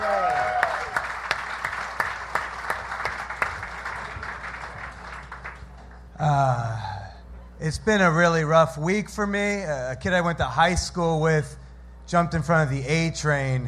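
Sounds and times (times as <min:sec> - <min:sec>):
audience clapping and cheering: 0:00.0 - 0:06.2
speech: 0:07.7 - 0:13.6.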